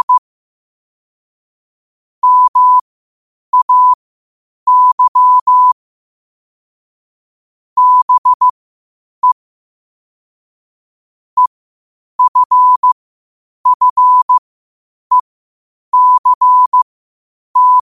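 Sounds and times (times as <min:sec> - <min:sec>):
morse code at 5 wpm: 0:00.0 - 0:00.2, 0:02.2 - 0:02.8, 0:03.6 - 0:04.0, 0:04.7 - 0:05.8, 0:07.8 - 0:08.5, 0:12.2 - 0:13.0, 0:13.7 - 0:14.4, 0:16.0 - 0:16.8, 0:17.6 - 0:17.9.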